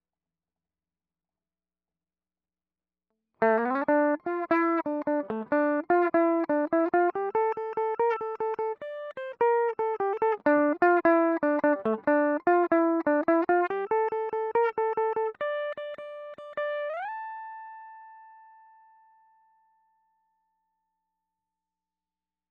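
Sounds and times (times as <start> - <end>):
guitar: 3.4 - 19.6.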